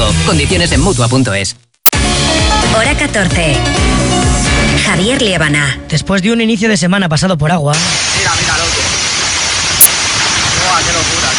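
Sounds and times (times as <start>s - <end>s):
speech: 0.3s - 1.6s, 2.7s - 9.0s
hailstorm with large hailstones falling in Tarragona: 7.9s - 11.3s.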